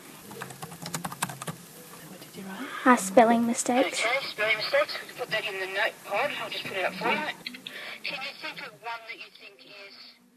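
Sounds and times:
computer keyboard typing an answer into an online chat pod: 0.3 - 1.6
speech: 2.5 - 7.4, 8.0 - 10.2.

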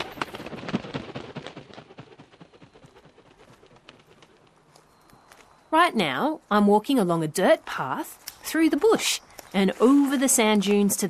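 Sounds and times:
bird wings flapping: 0.0 - 5.6
speech: 5.7 - 11.0.

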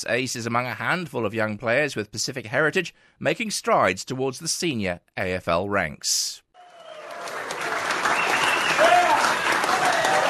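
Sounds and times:
speech: 0.0 - 6.4
whistles: 6.6 - 7.1, 8.0 - 9.0
teammates' hearty round of applause: 6.6 - 10.2.

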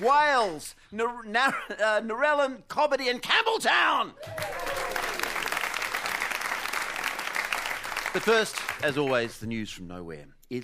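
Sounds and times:
speech: 0.0 - 5.0, 8.2 - 10.6
studio audience cheers: 4.2 - 6.0
studio audience clapping: 4.2 - 9.5.

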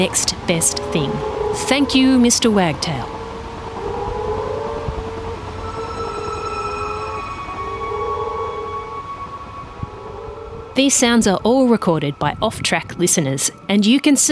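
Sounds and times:
speech: 0.0 - 3.2, 10.8 - 14.3
frogs calling: 0.0 - 13.7.

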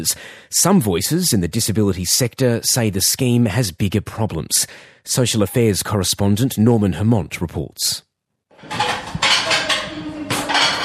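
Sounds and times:
speech: 0.0 - 8.9
dishes, pots and cutlery clattering during cleanup after a group cooking class: 8.6 - 10.8.

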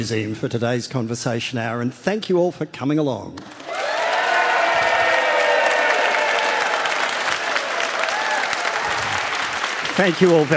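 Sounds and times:
speech: 0.0 - 3.7, 10.0 - 10.5
audience round of applause: 3.5 - 10.5
faint cheering: 3.7 - 9.7.

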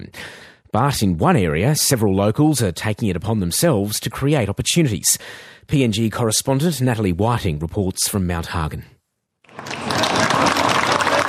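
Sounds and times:
speech: 0.2 - 9.0
small crowd of young men and boys cheering around a makeshift kickboxing ring in Mount Hagen: 9.5 - 11.2.

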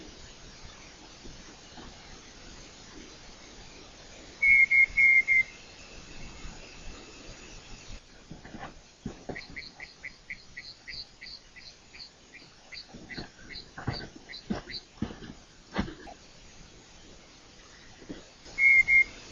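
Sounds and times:
night parrot whistling: 4.4 - 5.5, 18.5 - 19.2.

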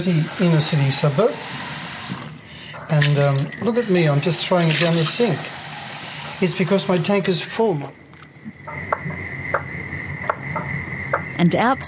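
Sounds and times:
speech: 0.0 - 1.6, 2.9 - 5.6, 6.4 - 8.0, 11.4 - 11.8
frogs calling in a backyard: 7.9 - 11.8.

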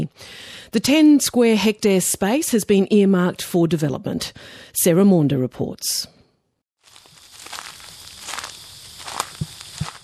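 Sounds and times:
speech: 0.1 - 6.2
constant hiss: 6.8 - 10.0
footsteps crunching along a gravel or leafy path: 6.8 - 10.0.

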